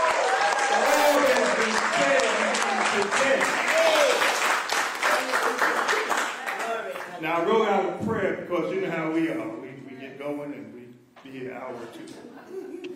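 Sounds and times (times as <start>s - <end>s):
audience applause: 0.0s - 7.2s
speech: 7.2s - 9.6s, 10.3s - 12.8s.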